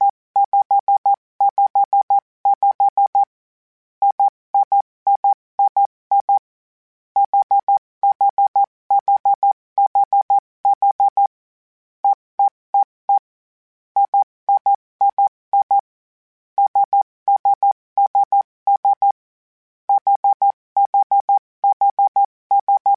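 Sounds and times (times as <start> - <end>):
morse code groups: 0.4 - 3.3, 4.0 - 6.4, 7.2 - 11.3, 12.0 - 13.3, 14.0 - 15.9, 16.6 - 19.2, 19.9 - 22.9.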